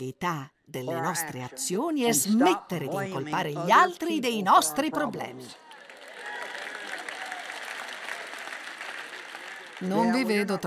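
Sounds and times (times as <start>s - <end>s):
speech: 0.0s - 5.6s, 9.8s - 10.6s
thin scattered audience applause: 5.6s - 10.6s.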